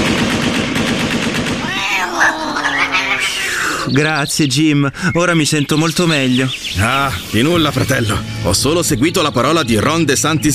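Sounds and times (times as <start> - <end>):
automatic fire from an AK-15 rifle shot into the air: 0.0 - 1.8
laughter: 1.6 - 4.0
speech: 3.9 - 10.5.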